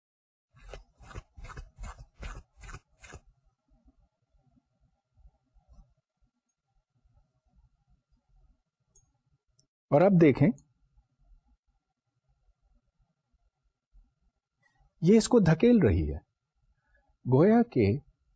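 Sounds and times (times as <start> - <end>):
comb being rubbed: 0.5 - 3.3
speech: 9.9 - 10.6, 15.0 - 16.3, 17.2 - 18.1.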